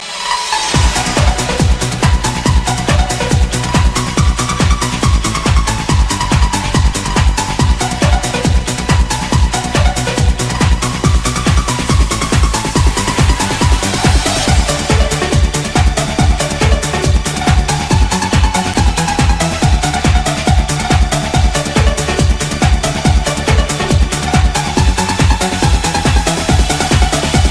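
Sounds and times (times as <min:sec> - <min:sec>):
dance music: 0:00.0 - 0:27.4.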